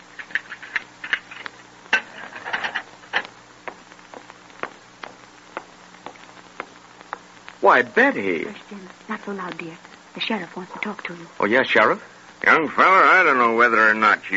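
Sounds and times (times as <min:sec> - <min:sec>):
hard hollow footsteps along a stone-flagged corridor: 0:00.5 - 0:09.7
speech: 0:07.6 - 0:14.3.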